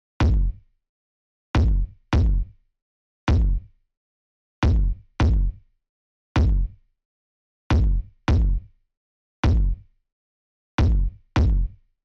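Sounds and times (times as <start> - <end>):
kick drum: 0.2 - 0.6, 1.6 - 2.5, 3.3 - 3.7, 4.6 - 5.6, 6.4 - 6.8, 7.7 - 8.7, 9.4 - 9.9, 10.8 - 11.8.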